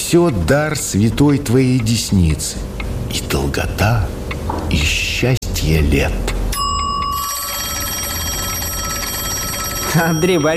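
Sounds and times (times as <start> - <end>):
speech: 0.1 - 6.3, 10.0 - 10.5
kitchen timer ringing: 6.5 - 10.5.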